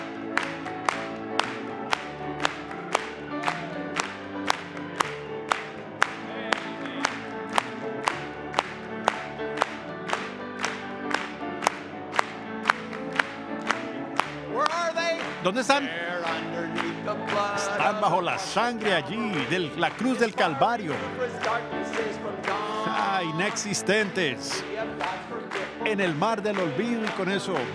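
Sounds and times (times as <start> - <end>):
music with sustained tones: 0.0 - 25.8
audience clapping in rhythm: 0.0 - 27.7
speech: 15.5 - 22.6, 23.2 - 25.2, 25.8 - 27.7.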